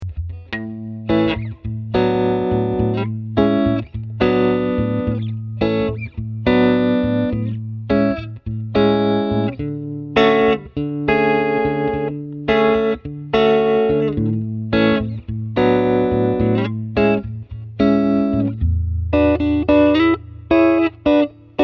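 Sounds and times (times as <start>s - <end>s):
guitar through an Ampeg Jet-12 guitar amplifier: 0.0s - 21.6s.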